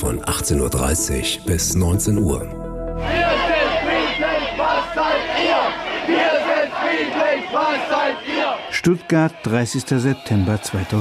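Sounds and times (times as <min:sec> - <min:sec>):
speech: 0:00.0 - 0:03.4, 0:07.0 - 0:10.9
protesters shouting during police clearance: 0:03.0 - 0:10.9.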